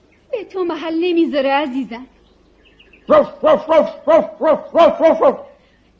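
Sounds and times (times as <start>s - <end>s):
speech: 0.5s - 2.2s, 3.1s - 5.5s
person imitating a dog barking: 3.1s - 5.6s.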